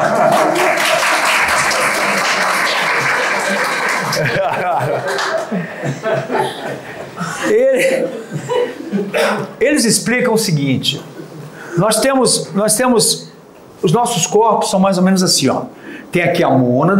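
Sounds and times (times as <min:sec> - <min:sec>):
audience applauding the production team at a live talk: 0:00.0 - 0:06.5
audience chuckling at a live talk: 0:00.0 - 0:09.2
speech: 0:05.8 - 0:06.4, 0:09.1 - 0:11.1, 0:11.8 - 0:16.9.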